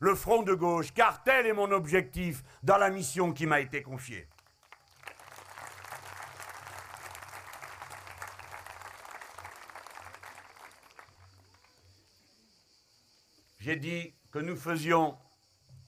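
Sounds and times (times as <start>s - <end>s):
speech: 0.0s - 4.4s, 13.6s - 15.2s
audience applause: 4.4s - 11.8s.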